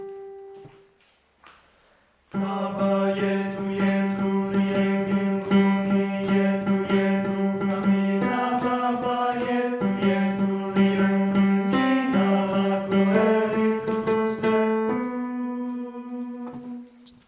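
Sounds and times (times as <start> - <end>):
boys singing tenor part: 2.3 - 17.1.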